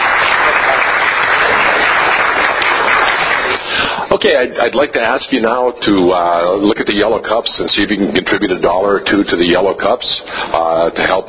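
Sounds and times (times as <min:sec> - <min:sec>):
audience applause: 0:00.0 - 0:03.9
speech: 0:04.2 - 0:11.2.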